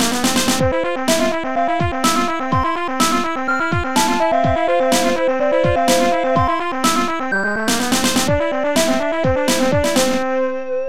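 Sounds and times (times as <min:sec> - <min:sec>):
jazz music: 0:00.1 - 0:10.7.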